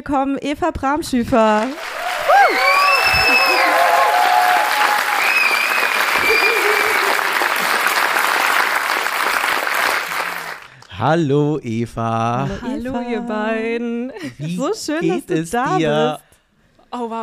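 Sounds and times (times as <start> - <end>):
speech: 0.0 - 3.5, 11.0 - 16.2, 16.9 - 17.2
thunderous applause from live audience: 1.6 - 10.9
laughter: 2.3 - 8.7, 14.2 - 16.1.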